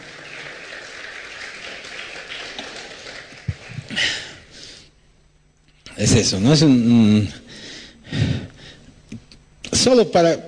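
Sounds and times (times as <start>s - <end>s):
audience applause: 0.0s - 4.4s
speech: 6.0s - 7.4s, 9.8s - 10.4s.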